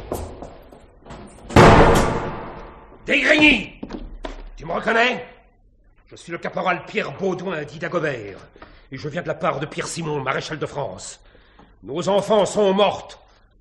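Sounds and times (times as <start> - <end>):
door being forced and burst open: 1.4 - 2.9
loud sustained crash: 1.6 - 2.8
speech: 4.9 - 5.3, 6.2 - 13.5.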